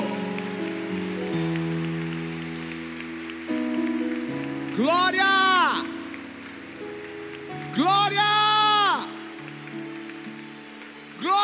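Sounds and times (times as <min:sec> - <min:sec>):
audience applauding: 0:00.0 - 0:11.4
speech: 0:04.8 - 0:05.9, 0:07.8 - 0:08.3.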